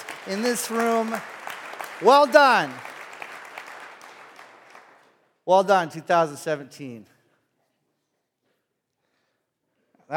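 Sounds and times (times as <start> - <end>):
audience applause: 0.0 - 5.1
speech: 0.2 - 1.4, 2.0 - 2.9, 5.5 - 7.1.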